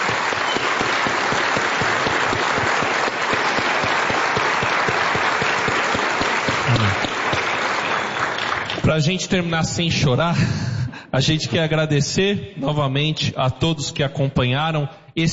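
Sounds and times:
audience applause: 0:00.0 - 0:08.9
speech: 0:08.9 - 0:15.3.

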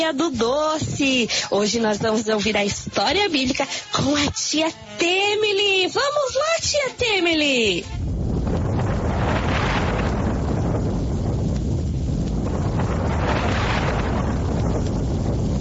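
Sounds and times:
speech: 0:00.0 - 0:08.1
strong wind of a whirlwind roaring: 0:07.8 - 0:15.5.

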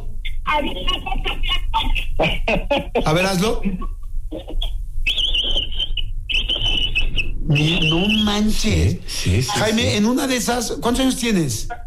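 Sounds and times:
speech: 0:00.5 - 0:04.7, 0:07.5 - 0:11.8
laughter: 0:00.7 - 0:04.7
man imitating capybara call from throat: 0:03.6 - 0:08.9.

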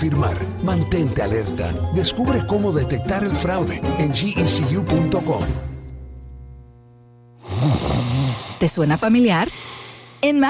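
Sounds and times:
speech: 0:00.0 - 0:05.7, 0:08.6 - 0:10.4
snoring: 0:07.4 - 0:10.3.

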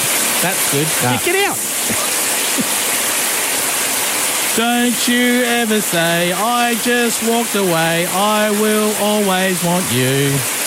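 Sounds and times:
hot water running from a tap: 0:00.0 - 0:10.6
speech: 0:00.4 - 0:02.0, 0:02.6 - 0:02.8, 0:04.6 - 0:10.5.

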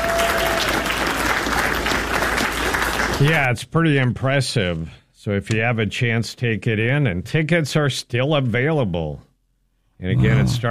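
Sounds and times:
round of applause: 0:00.0 - 0:03.4
speech: 0:03.2 - 0:09.3, 0:10.0 - 0:10.6.

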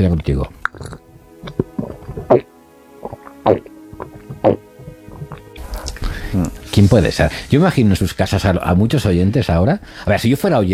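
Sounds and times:
speech: 0:00.0 - 0:01.6, 0:06.8 - 0:10.7
person drinking water: 0:00.2 - 0:06.6.

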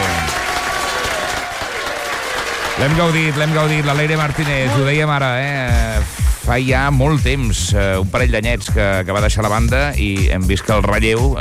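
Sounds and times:
audience applause on a Catalan entertainment show: 0:00.0 - 0:05.6
speech: 0:02.8 - 0:11.3.

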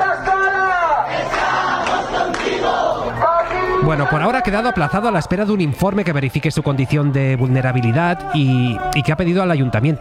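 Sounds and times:
crowd of neighbours chanting at protest: 0:00.9 - 0:03.5
speech: 0:03.8 - 0:09.9.

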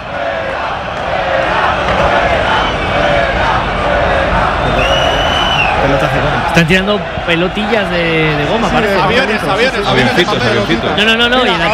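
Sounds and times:
football stadium crowd roaring and chanting: 0:00.0 - 0:11.7
whistles and shouts: 0:02.4 - 0:03.0, 0:04.6 - 0:06.0
speech: 0:06.6 - 0:11.7.

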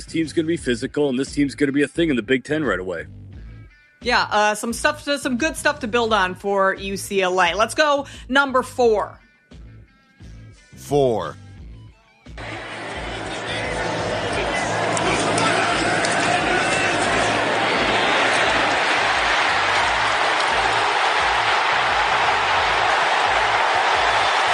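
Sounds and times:
speech: 0:00.0 - 0:03.2, 0:04.0 - 0:09.2, 0:10.9 - 0:11.4
stadium crowd roaring: 0:12.4 - 0:24.5.

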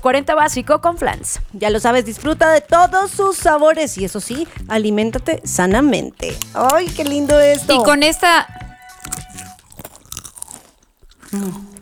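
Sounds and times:
speech: 0:00.0 - 0:09.2, 0:11.3 - 0:11.7
crunching snack chips being bitten and chewed: 0:03.8 - 0:11.7.

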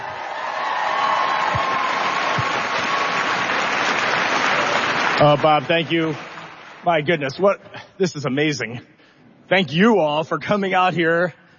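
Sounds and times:
faint whoops and cheers: 0:00.0 - 0:03.7
crowd applauding: 0:00.0 - 0:07.4
speech: 0:05.2 - 0:08.9, 0:09.5 - 0:11.4.

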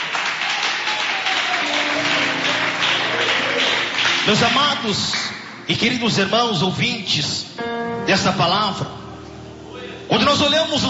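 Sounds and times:
crowd applauding: 0:00.0 - 0:05.7
speech: 0:04.2 - 0:09.0, 0:10.1 - 0:10.8.

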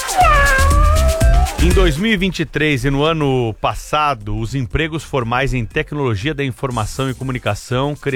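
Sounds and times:
person imitating a cat meow: 0:00.1 - 0:01.9
speech: 0:01.7 - 0:08.1.

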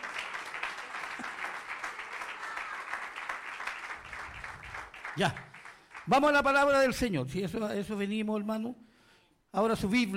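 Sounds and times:
audience clapping in praise: 0:00.0 - 0:06.8
speech: 0:05.2 - 0:05.5, 0:06.1 - 0:08.8, 0:09.5 - 0:10.1.

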